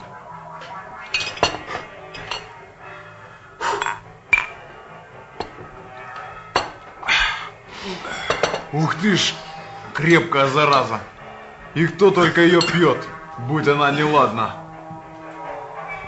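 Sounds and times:
glasses clinking in a toast: 0:01.1 - 0:02.6, 0:03.8 - 0:04.6, 0:06.2 - 0:06.8, 0:08.2 - 0:08.7, 0:12.5 - 0:13.1
speech: 0:08.8 - 0:09.4, 0:10.0 - 0:11.1, 0:11.7 - 0:14.6.

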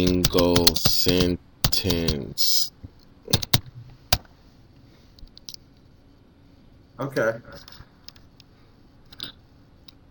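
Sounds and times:
keystrokes on a computer keyboard: 0:00.0 - 0:02.3, 0:03.3 - 0:04.3
speech: 0:00.0 - 0:03.5, 0:07.0 - 0:07.8.

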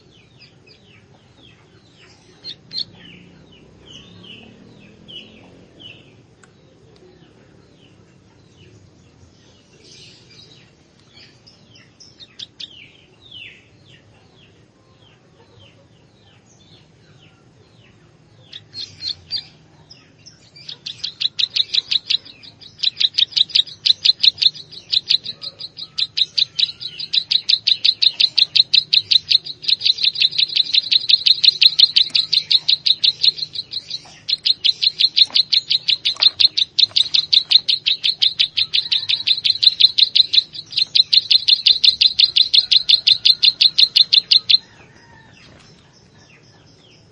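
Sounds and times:
plain prinia singing repeated high notes: 0:20.9 - 0:44.6.

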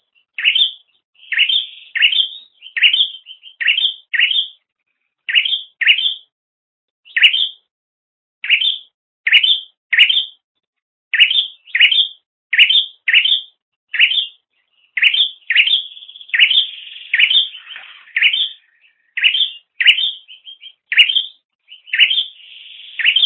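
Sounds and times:
bird chirping: 0:00.0 - 0:04.6, 0:05.3 - 0:06.3, 0:07.1 - 0:07.7, 0:08.4 - 0:10.4, 0:11.1 - 0:23.2.

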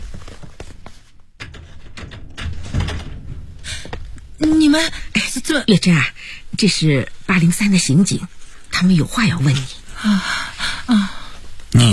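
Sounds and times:
door being opened: 0:01.4 - 0:04.8
speech: 0:04.5 - 0:11.1.

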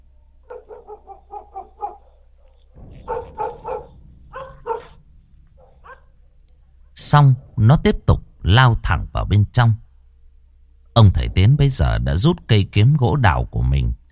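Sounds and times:
black dog barking loudly at night toward a forest: 0:00.5 - 0:05.0, 0:05.6 - 0:06.1
speech: 0:07.1 - 0:09.8, 0:11.0 - 0:14.0.

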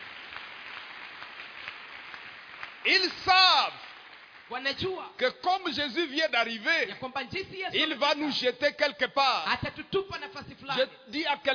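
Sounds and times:
congregation clapping in acclaim of Jesus during a church service: 0:00.0 - 0:06.8
speech: 0:02.8 - 0:03.9, 0:04.5 - 0:11.5.

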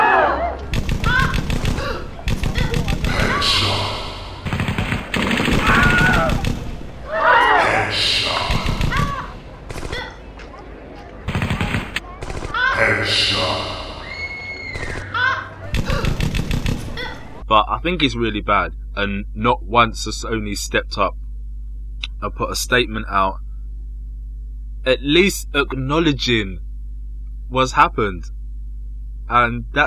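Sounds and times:
people talking and shouting: 0:00.0 - 0:17.5
automatic gunfire in a video game drive-by shooting: 0:00.7 - 0:06.9, 0:08.4 - 0:10.1, 0:11.3 - 0:12.6, 0:15.7 - 0:17.4
speech: 0:17.8 - 0:21.2, 0:22.2 - 0:23.4, 0:24.8 - 0:26.6, 0:27.5 - 0:28.4, 0:29.3 - 0:29.8.

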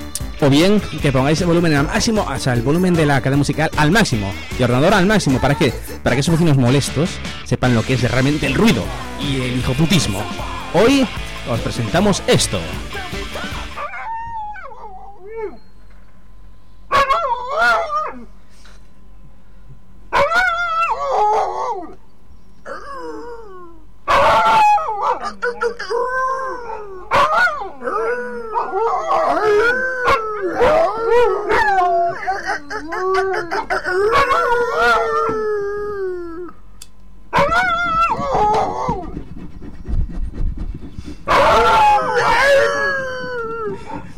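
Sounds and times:
speech: 0:00.4 - 0:13.2
dog howling: 0:13.1 - 0:15.7, 0:16.9 - 0:18.3, 0:20.1 - 0:22.0, 0:22.7 - 0:36.5, 0:37.3 - 0:39.3, 0:41.3 - 0:44.1.

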